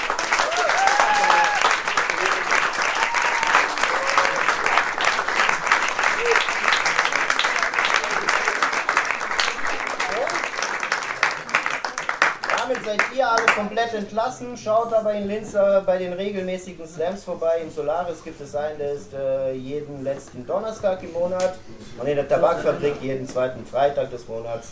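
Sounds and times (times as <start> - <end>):
audience applause: 0.0 - 13.7
speech: 13.6 - 24.6.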